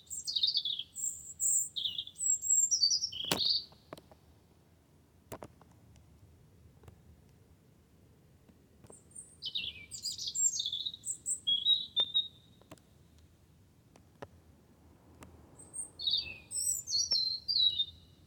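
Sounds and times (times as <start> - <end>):
wren singing: 0.0 - 3.8, 8.9 - 12.8, 15.6 - 18.2.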